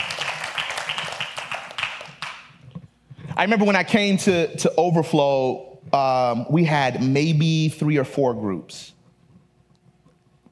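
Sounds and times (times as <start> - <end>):
audience clapping: 0.0 - 2.6
speech: 3.4 - 9.0.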